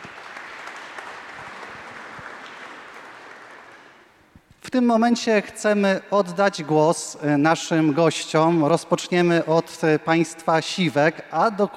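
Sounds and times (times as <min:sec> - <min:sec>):
audience applause: 0:00.0 - 0:04.1
speech: 0:04.7 - 0:11.7.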